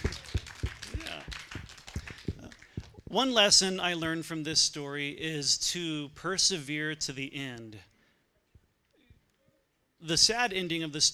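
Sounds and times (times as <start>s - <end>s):
murmuring voices: 0.0s - 3.3s
audience clapping: 0.0s - 3.4s
speech: 3.1s - 7.9s, 10.1s - 11.1s.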